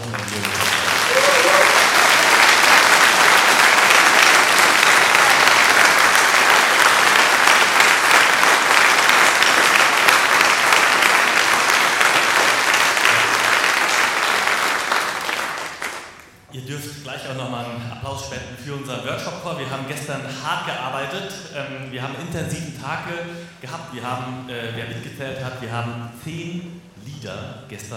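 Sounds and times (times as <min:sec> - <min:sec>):
audience applause: 0:00.0 - 0:16.4
speech: 0:20.1 - 0:27.9.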